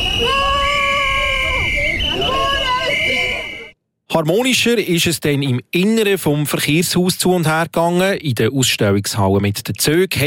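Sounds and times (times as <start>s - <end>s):
loud demonstrators shouting against motorway expansion: 0.0s - 3.7s
speech: 4.2s - 10.2s.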